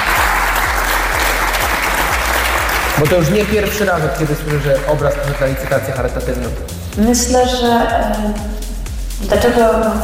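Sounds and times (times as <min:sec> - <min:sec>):
audience applause: 0:00.0 - 0:06.0
speech: 0:03.0 - 0:08.6, 0:09.2 - 0:10.0.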